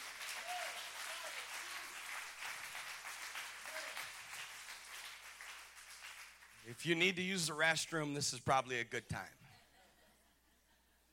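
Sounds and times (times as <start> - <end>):
audience clapping hands: 0.0 - 7.6
speech: 6.6 - 9.4.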